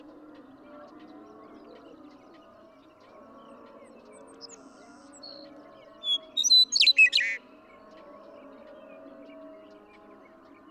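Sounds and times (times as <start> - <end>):
western meadowlark singing: 6.0 - 7.4.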